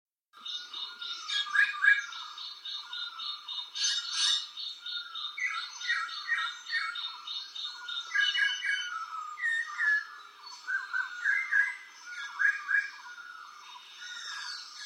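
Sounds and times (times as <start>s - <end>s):
frog chorus chirping at night: 0.4s - 14.8s.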